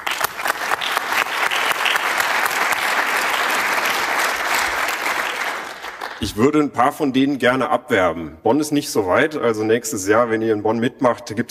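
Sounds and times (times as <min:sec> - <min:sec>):
audience applause: 0:00.0 - 0:06.2
speech: 0:06.2 - 0:11.4.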